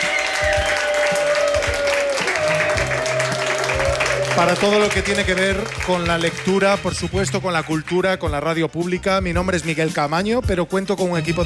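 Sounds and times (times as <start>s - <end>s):
audience applause: 0.0s - 7.8s
speech: 4.4s - 11.4s.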